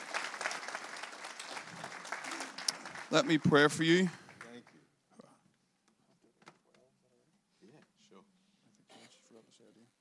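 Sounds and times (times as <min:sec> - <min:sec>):
audience applause: 0:00.0 - 0:04.7
speech: 0:03.1 - 0:04.2.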